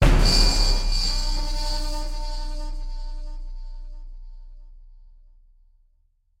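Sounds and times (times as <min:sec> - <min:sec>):
jump scare stinger: 0:00.0 - 0:04.7.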